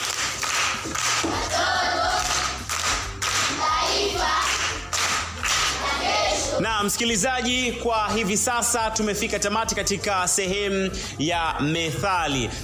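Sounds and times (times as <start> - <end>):
clapping for a primary-school pupil in a proverbs quiz: 0.0 - 6.6
speech: 6.8 - 12.6.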